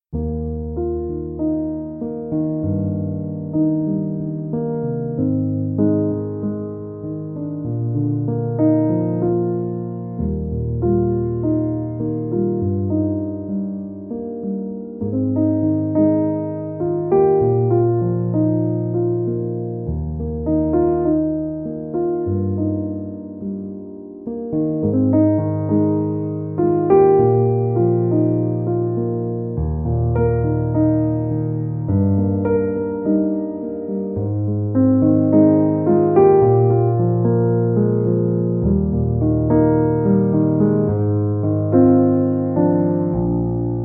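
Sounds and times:
instrumental piano music: 0.0 - 43.8.

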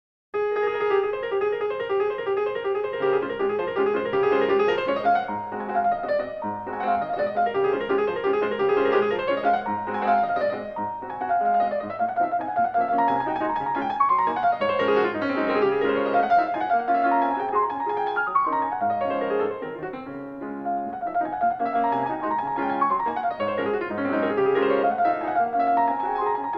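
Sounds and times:
fast waltz: 0.7 - 26.5.

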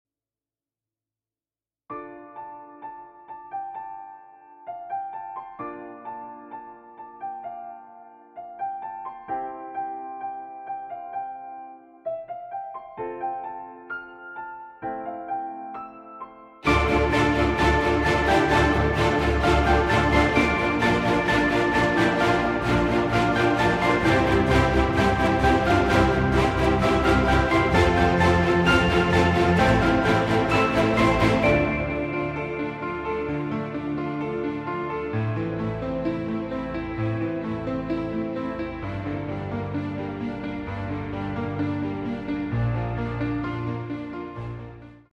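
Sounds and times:
orchestral music: 16.6 - 45.0.

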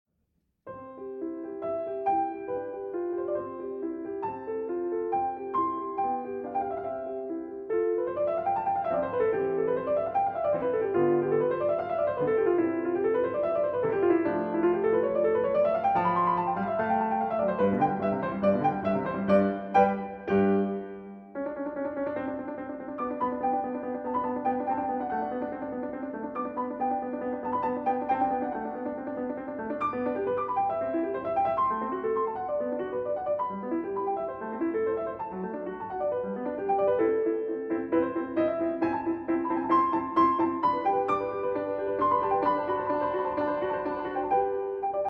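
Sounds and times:
piano sonata movement: 0.6 - 45.0.

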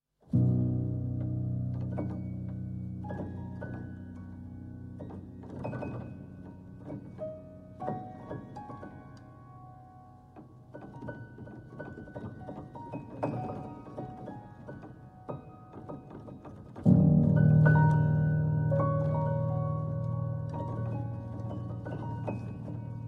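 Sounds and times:
piano reworks: 0.3 - 23.0.

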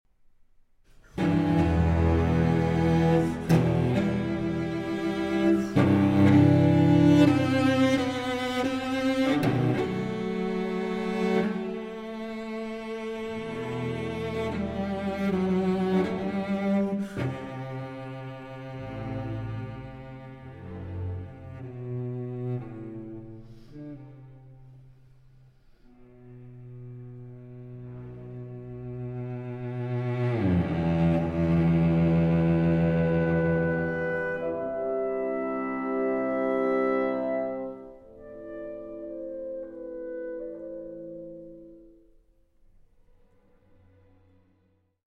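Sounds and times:
cello concerto adagio movement: 1.1 - 41.9.

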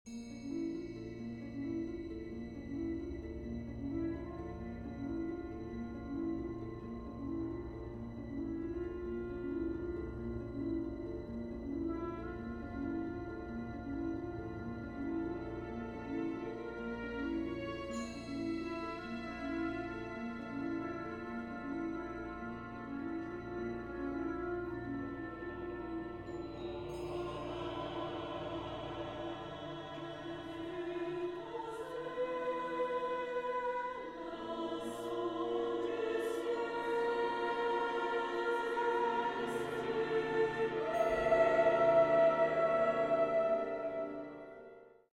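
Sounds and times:
chamber choir singing: 0.4 - 45.1.

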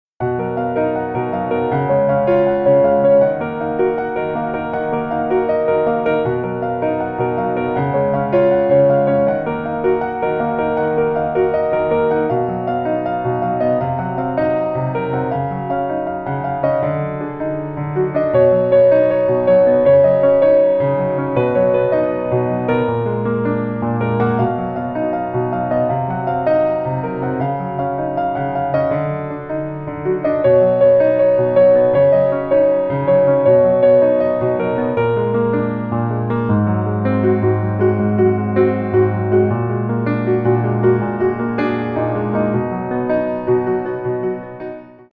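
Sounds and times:
instrumental music: 0.2 - 45.1.

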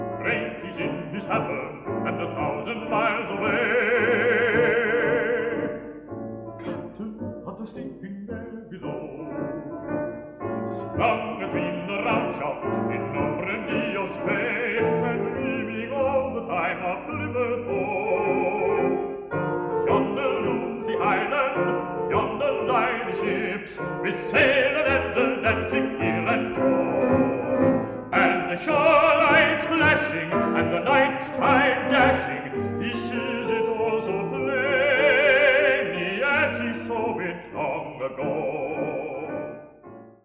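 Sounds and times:
male voice choir: 0.2 - 5.7, 6.6 - 9.8, 10.7 - 18.9, 19.9 - 39.5.

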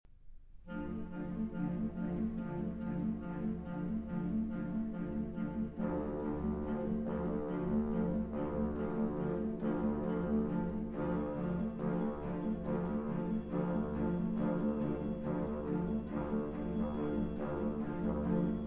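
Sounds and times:
violin with orchestra: 0.7 - 18.6.

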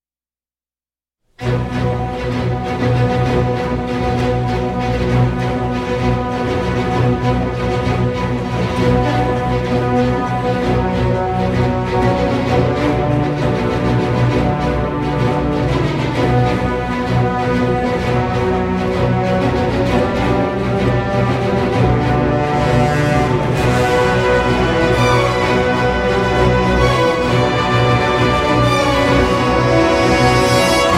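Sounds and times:
orchestral music: 1.4 - 30.9.

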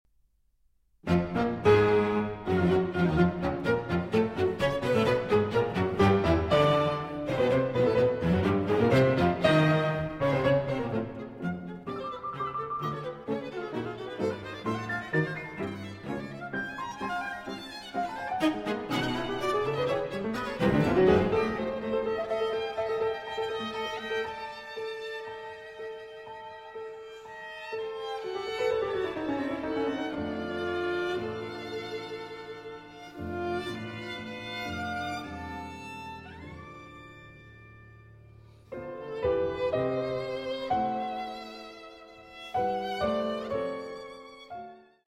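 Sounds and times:
piano quartet: 1.0 - 45.0.

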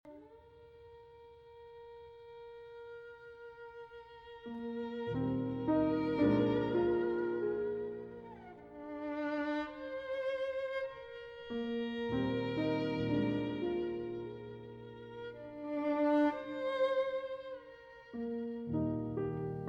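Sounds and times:
violin: 0.0 - 19.6
piano: 0.1 - 19.6.

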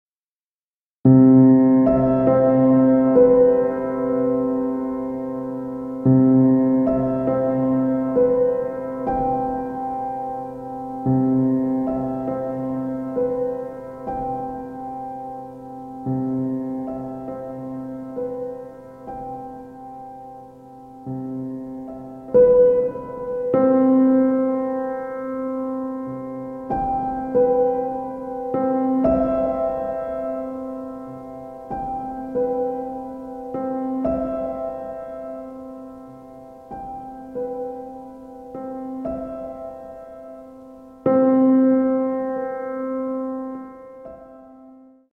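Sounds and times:
piano: 1.0 - 45.1.

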